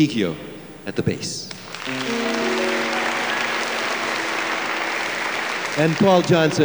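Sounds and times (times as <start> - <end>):
speech: 0.0 - 2.3, 5.8 - 6.6
audience applause: 1.6 - 6.6.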